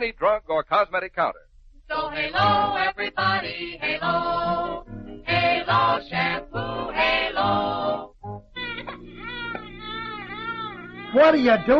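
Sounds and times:
speech: 0.0s - 8.1s, 11.1s - 11.7s
baby crying: 8.6s - 11.7s.

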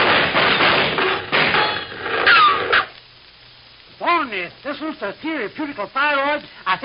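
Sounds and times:
gunshots: 0.0s - 2.9s
speech: 4.6s - 6.8s.

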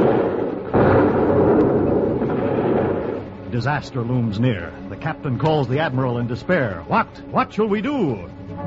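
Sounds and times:
heavy naval guns roaring in a sea battle: 0.0s - 4.3s
speech: 3.6s - 8.4s.

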